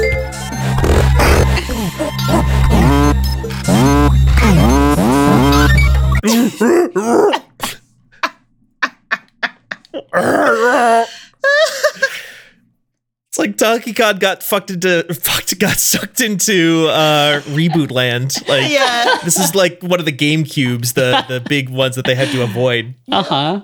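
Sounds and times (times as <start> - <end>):
video game soundtrack music with heavy bass: 0.0 - 6.2
grunting, groaning vocal sounds: 0.8 - 7.8, 10.0 - 11.2, 16.8 - 19.5, 21.1 - 22.8
laughter: 1.2 - 3.1, 8.2 - 10.1, 16.7 - 23.6
speech: 13.6 - 23.6.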